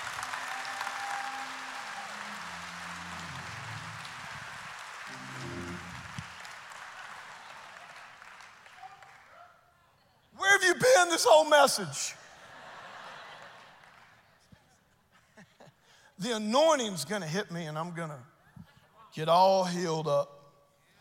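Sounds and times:
audience clapping: 0.0 - 9.4, 13.4 - 14.2
speech: 10.8 - 12.2, 16.2 - 18.3, 19.2 - 20.4.

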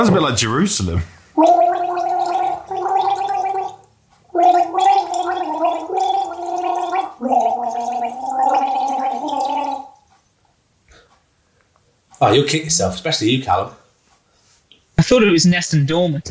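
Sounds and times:
speech: 0.0 - 1.8, 12.3 - 13.8, 15.1 - 16.2
person humming while gargling water: 1.4 - 10.0.

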